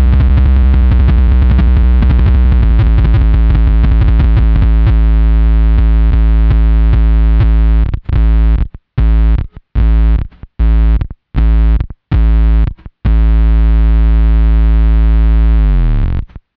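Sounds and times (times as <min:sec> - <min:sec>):
bass through octave pedal with square fuzz effect: 0:00.0 - 0:16.5.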